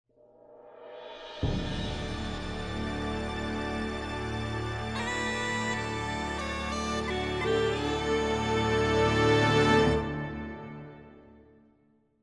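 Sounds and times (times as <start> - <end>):
music: 0.1 - 12.2.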